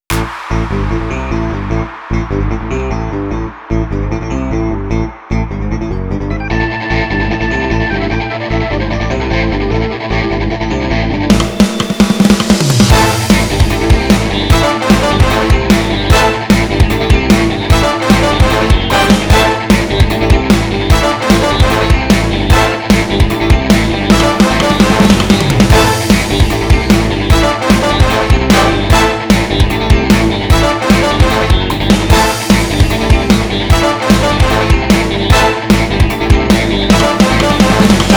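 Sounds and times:
entertainment funk music: 0:00.0 - 0:38.1.

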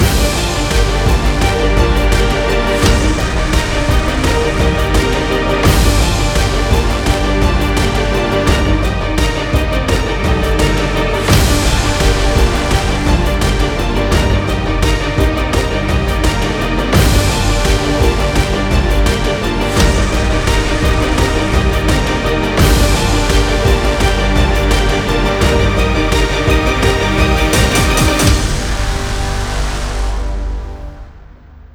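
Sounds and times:
cinematic music: 0:00.0 - 0:31.7.

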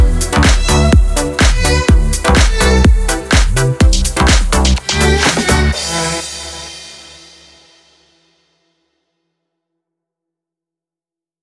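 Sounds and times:
electronic house techno music: 0:00.0 - 0:07.0.

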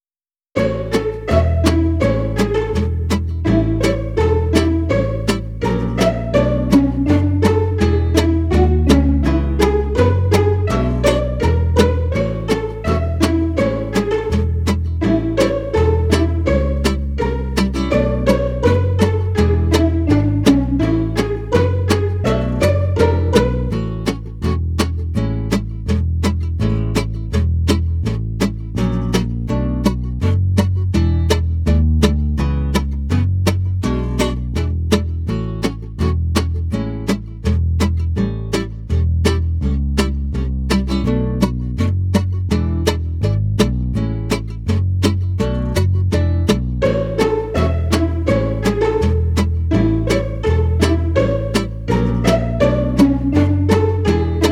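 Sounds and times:
cheerful entertainment pizzicato music: 0:00.6 - 0:54.4.

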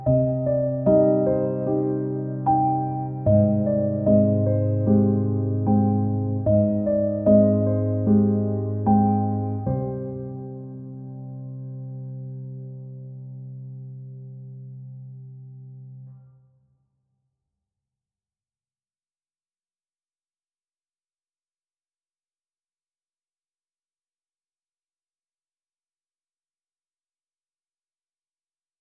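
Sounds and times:
piano music: 0:00.0 - 0:16.1.

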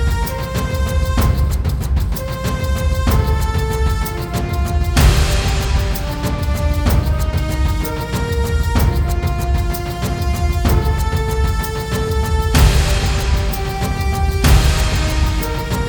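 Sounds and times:
cinematic tension music without strings or vocals: 0:00.0 - 0:15.8.

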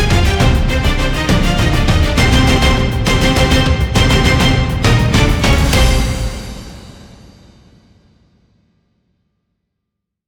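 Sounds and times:
tension music: 0:00.0 - 0:07.0.

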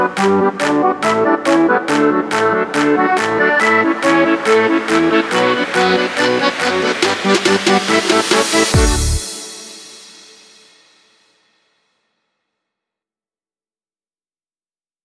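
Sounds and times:
electronic house techno music: 0:00.0 - 0:10.0.

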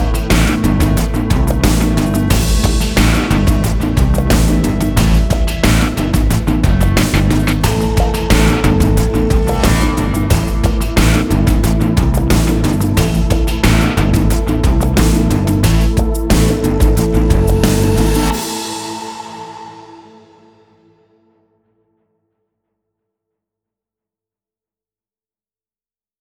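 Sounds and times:
cheerful bass line: 0:00.0 - 0:18.4.

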